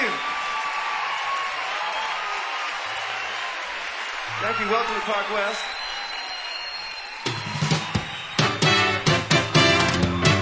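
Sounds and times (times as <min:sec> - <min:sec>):
audience applause: 0:00.0 - 0:10.3
speech: 0:04.4 - 0:05.8.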